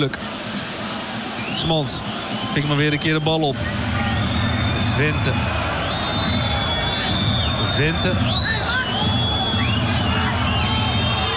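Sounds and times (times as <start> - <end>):
speech: 0.0 - 0.4, 1.6 - 4.0, 5.0 - 5.6, 7.8 - 8.5
football crowd grumbling in the stadium stands: 3.6 - 11.3.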